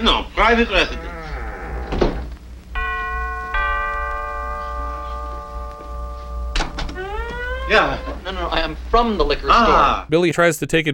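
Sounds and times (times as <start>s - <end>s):
speech: 0.0s - 1.1s, 7.7s - 10.9s
two-note doorbell ding-dong: 2.8s - 7.0s.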